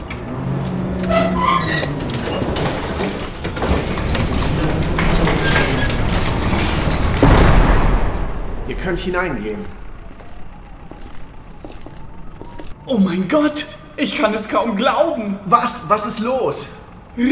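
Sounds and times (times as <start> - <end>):
door being pushed open by robot arms: 0.1 - 11.4
speech: 8.9 - 9.8, 12.9 - 17.3.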